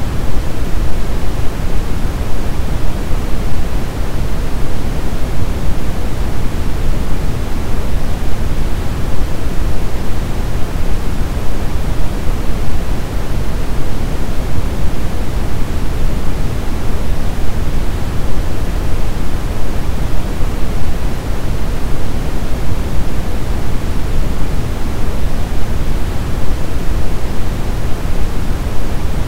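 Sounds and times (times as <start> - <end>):
deep brown noise: 0.0 - 29.2.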